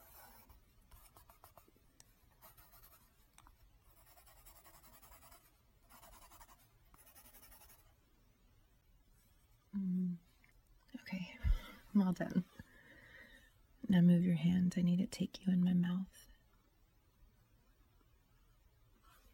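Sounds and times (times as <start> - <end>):
pencil sketching on paper: 0.0 - 1.6, 2.4 - 3.1, 3.9 - 7.9
speech: 11.1 - 12.5, 13.9 - 16.3.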